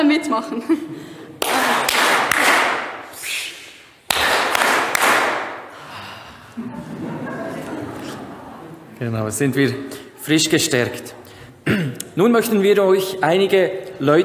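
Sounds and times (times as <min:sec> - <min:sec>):
speech: 0:00.0 - 0:01.2, 0:09.0 - 0:14.2
hand clapping: 0:01.4 - 0:03.3, 0:04.0 - 0:05.7
laughter: 0:06.3 - 0:09.0.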